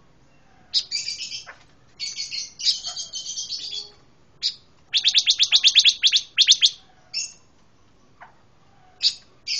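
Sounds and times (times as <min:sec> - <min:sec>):
pancawarna songbird singing wavering whistled notes, buzzy chirps and rasping trill: 0:00.3 - 0:07.4, 0:09.0 - 0:09.5.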